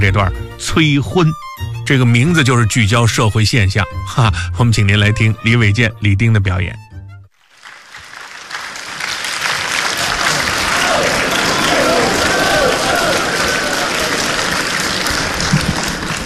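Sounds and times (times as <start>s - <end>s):
speech: 0.0s - 6.8s
audience applause: 7.4s - 16.2s.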